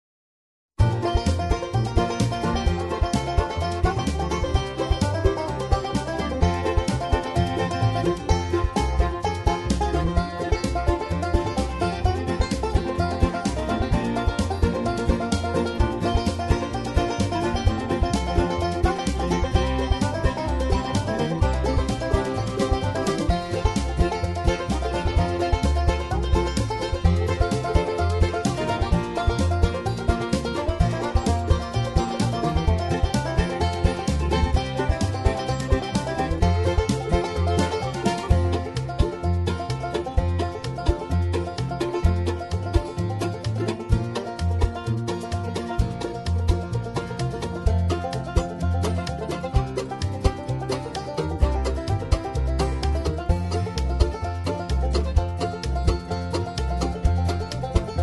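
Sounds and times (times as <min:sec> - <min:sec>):
banjo square dance music: 0:00.8 - 0:58.0.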